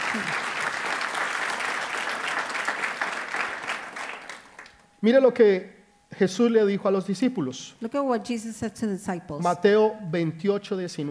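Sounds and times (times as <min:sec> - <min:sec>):
loud applause from a large crowd: 0:00.0 - 0:04.8
speech: 0:00.1 - 0:00.5, 0:05.0 - 0:11.0.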